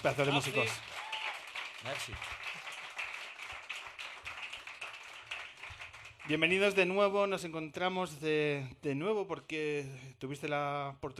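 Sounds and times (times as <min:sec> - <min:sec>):
speech: 0:00.0 - 0:00.9, 0:01.8 - 0:02.4, 0:06.3 - 0:11.1
applause: 0:00.0 - 0:07.1.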